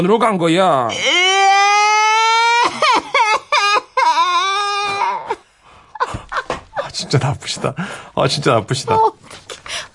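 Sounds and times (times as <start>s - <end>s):
speech: 0.0s - 1.3s, 7.0s - 9.2s
child crying: 0.9s - 5.4s.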